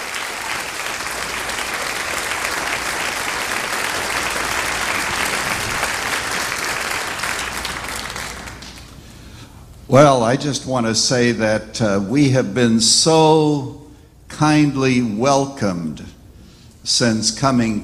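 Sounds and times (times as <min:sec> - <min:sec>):
large church audience applause welcoming a guest pastor: 0:00.0 - 0:09.1
speech: 0:09.9 - 0:13.8, 0:14.4 - 0:16.2, 0:16.8 - 0:17.8.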